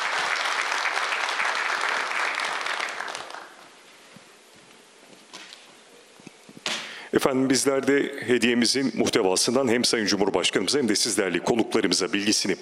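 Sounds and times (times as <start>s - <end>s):
crowd applause: 0.0s - 3.8s
speech: 7.1s - 12.5s.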